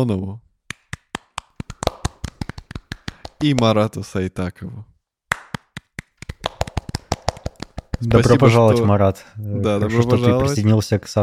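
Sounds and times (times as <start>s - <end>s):
speech: 0.0s - 0.4s, 3.4s - 4.9s, 8.0s - 11.2s
small group of people clapping for thanked supporters: 0.7s - 3.8s, 5.3s - 8.6s.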